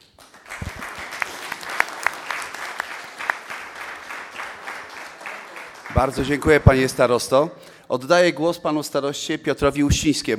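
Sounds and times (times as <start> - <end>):
audience applause: 0.0 - 7.1
speech: 6.0 - 10.3.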